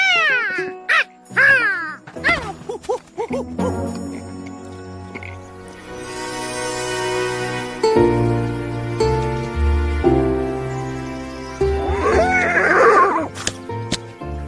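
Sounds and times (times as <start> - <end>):
music: 0.0 - 14.4
horse whinnying: 11.9 - 13.3.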